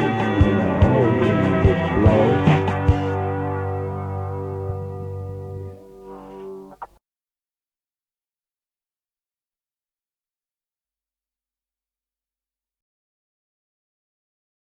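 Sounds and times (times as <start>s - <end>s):
reggae music: 0.0s - 6.9s.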